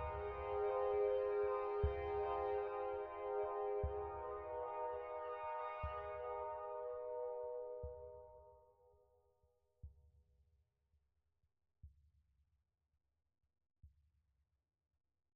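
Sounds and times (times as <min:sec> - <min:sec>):
uncomfortable ambience: 0:00.0 - 0:07.9.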